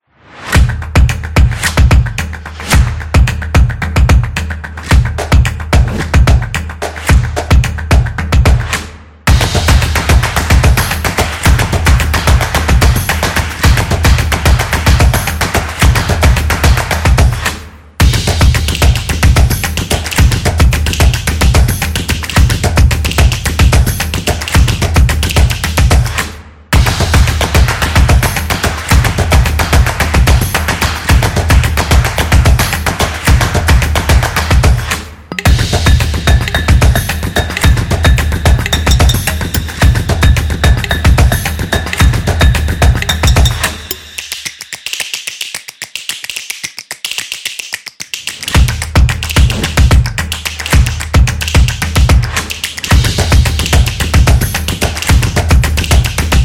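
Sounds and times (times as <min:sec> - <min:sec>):
upbeat percussion: 0:00.2 - 0:56.4.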